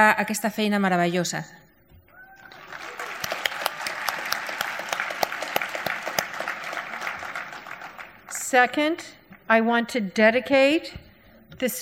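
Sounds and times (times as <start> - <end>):
speech: 0.0 - 1.6, 8.5 - 11.0, 11.6 - 11.8
audience applause: 2.2 - 8.3.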